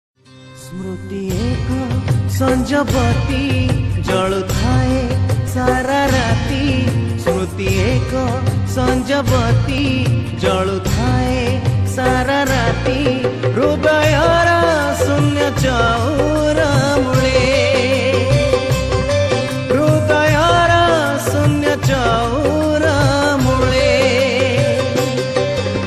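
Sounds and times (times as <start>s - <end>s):
Odia bhajan singing: 0.7s - 18.9s, 19.5s - 25.3s.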